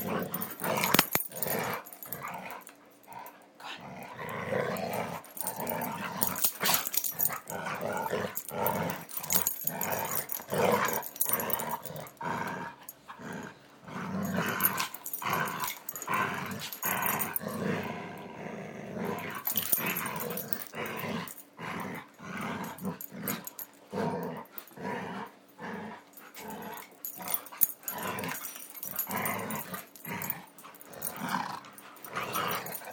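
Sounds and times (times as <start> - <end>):
dogs growling while playing tug: 0.0 - 32.9.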